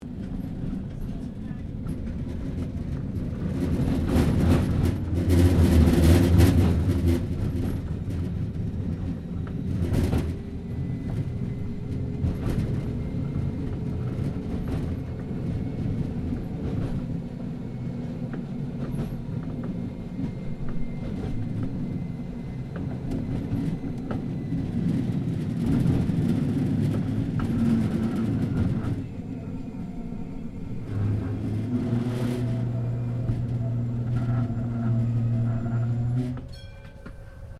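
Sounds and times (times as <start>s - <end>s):
Melbourne W Class tram interior starting and stopping: 0.0s - 37.5s.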